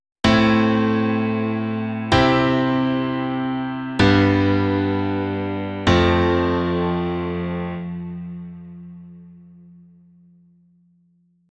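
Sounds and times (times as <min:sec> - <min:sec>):
piano: 0:00.2 - 0:11.5.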